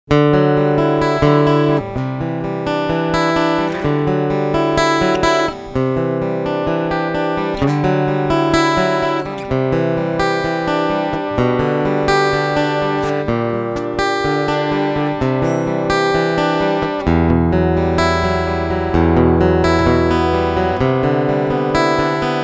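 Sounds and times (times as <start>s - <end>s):
string picking: 0.7s - 22.4s.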